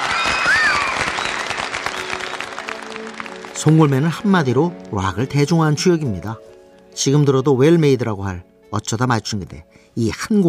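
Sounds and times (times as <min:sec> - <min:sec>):
applause: 0:00.0 - 0:05.1
speech: 0:03.6 - 0:06.4, 0:07.0 - 0:10.4.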